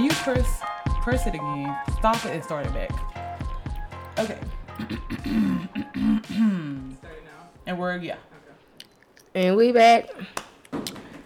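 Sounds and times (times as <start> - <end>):
speech: 0.1 - 3.2, 4.2 - 7.1, 7.7 - 8.3, 9.3 - 10.4
hand slapping skin: 10.3 - 11.1.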